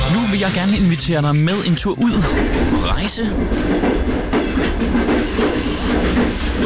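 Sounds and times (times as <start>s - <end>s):
train clattering along the rails: 0.1s - 6.6s
speech: 0.4s - 4.1s
wheels clicking over track joints: 2.1s - 6.6s.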